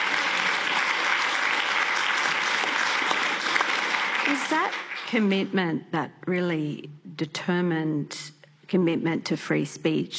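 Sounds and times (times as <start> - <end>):
audience applause: 0.0 - 5.1
speech: 4.3 - 10.1.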